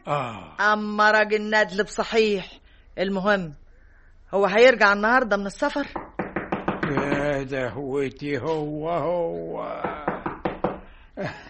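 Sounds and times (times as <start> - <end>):
speech: 0.0 - 3.6, 4.3 - 6.0, 6.9 - 9.9, 11.2 - 11.4
knocking on a door in an Egyptian radio drama: 5.9 - 7.4, 9.8 - 10.9.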